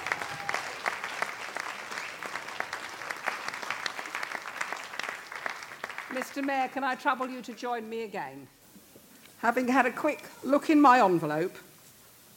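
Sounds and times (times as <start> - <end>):
audience applause: 0.0 - 6.8
speech: 6.2 - 8.6, 9.4 - 11.7.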